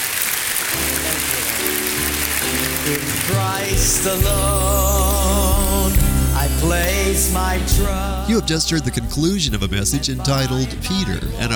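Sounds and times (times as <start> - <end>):
audience clapping: 0.0 - 3.8
speech: 2.8 - 11.5.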